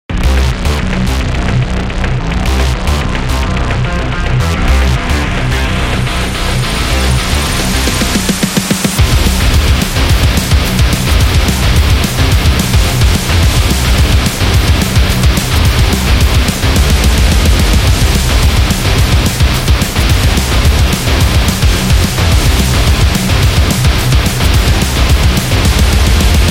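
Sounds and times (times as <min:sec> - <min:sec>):
high energy metal music: 0:00.1 - 0:26.4.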